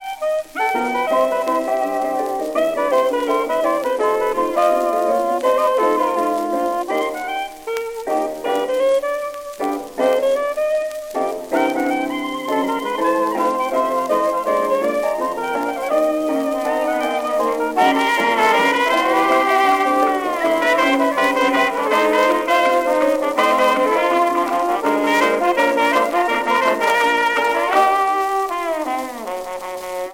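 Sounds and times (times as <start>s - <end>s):
jazz and blues from a jukebox: 0.0s - 30.1s.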